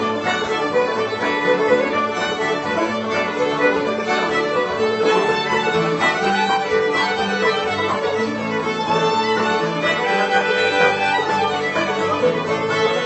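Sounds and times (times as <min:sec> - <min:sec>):
banjo in an old-time jam: 0:00.0 - 0:13.0
fiddle in an old-time jam: 0:00.0 - 0:13.0
guitar in an old-time jam: 0:00.0 - 0:13.0.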